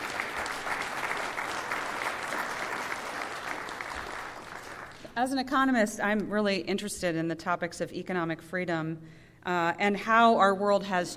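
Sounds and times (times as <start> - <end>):
audience applause welcoming panelists at an economics panel event: 0.0 - 5.1
speech: 5.2 - 11.1.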